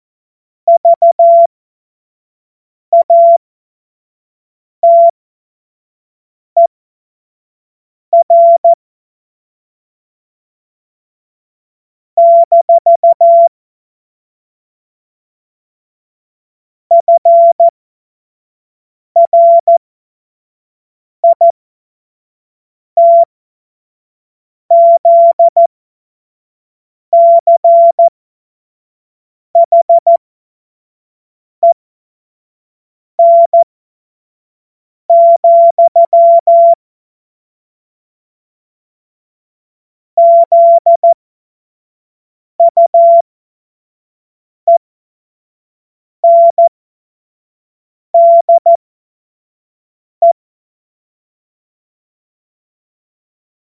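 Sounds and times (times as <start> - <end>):
CW Morse code beeps: 0.7 - 1.5, 3.0 - 3.4, 4.8 - 5.1, 8.2 - 8.8, 12.2 - 13.5, 16.9 - 17.7, 19.2 - 19.8, 21.2 - 21.4, 23.0 - 23.3, 24.7 - 25.7, 27.2 - 28.1, 29.6 - 30.2, 33.2 - 33.7, 35.1 - 36.8, 40.2 - 41.2, 42.6 - 43.2, 46.2 - 46.7, 48.2 - 48.8.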